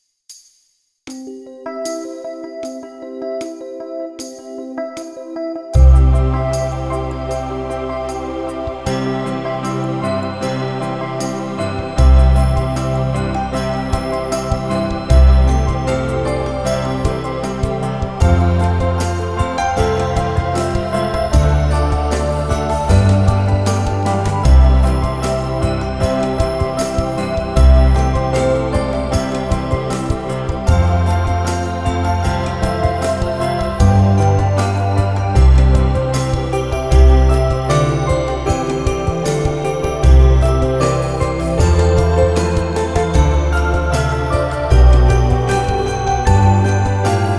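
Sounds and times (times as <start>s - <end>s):
chill mix of a Christmas song: 1.1s - 47.3s.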